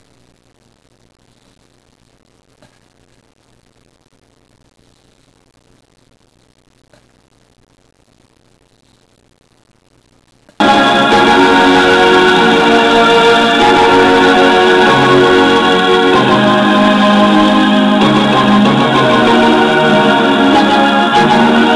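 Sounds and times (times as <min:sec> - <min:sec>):
brega music: 0:10.6 - 0:21.7.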